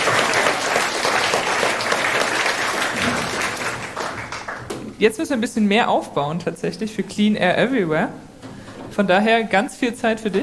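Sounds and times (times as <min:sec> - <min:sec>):
audience applause: 0:00.0 - 0:04.7
speech: 0:05.0 - 0:08.3, 0:09.0 - 0:10.4.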